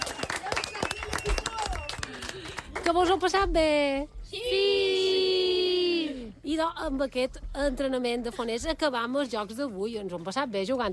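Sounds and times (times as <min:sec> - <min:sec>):
people cheering: 0:00.0 - 0:02.5, 0:04.4 - 0:06.2
crowd clapping: 0:00.0 - 0:03.2
speech: 0:02.9 - 0:04.8, 0:06.6 - 0:10.9.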